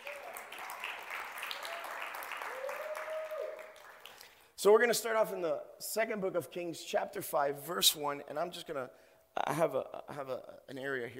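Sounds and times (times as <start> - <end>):
audience applause: 0.0 - 4.4
speech: 4.6 - 11.1.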